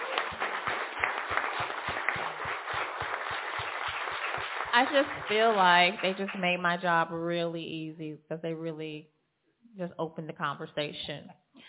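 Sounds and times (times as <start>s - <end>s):
audience applause: 0.0s - 6.5s
speech: 4.7s - 9.1s, 9.8s - 11.4s.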